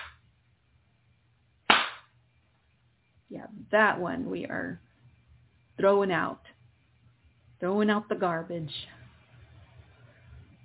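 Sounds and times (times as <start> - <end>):
loud hand clap: 1.7 - 2.1
speech: 3.3 - 4.9, 5.8 - 6.5, 7.6 - 8.9.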